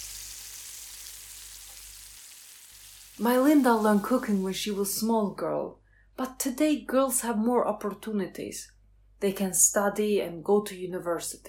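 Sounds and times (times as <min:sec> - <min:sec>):
meat frying in a pan: 0:00.0 - 0:04.9
speech: 0:03.2 - 0:11.4.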